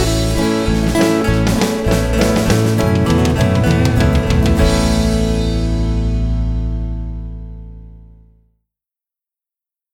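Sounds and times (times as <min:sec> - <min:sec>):
drum fills: 0:00.0 - 0:06.6
lead melody: 0:00.0 - 0:08.1.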